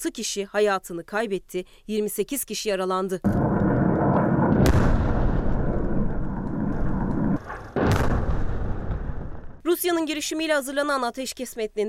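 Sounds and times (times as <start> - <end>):
speech: 0.0 - 3.5, 9.7 - 11.8
artillery fire rumbling: 3.2 - 9.6
sharp loud artillery blasts: 3.3 - 9.6.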